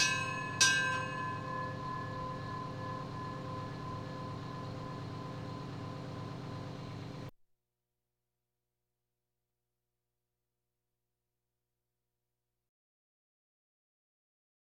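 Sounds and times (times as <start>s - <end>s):
fire engine sirens: 0.0s - 7.3s.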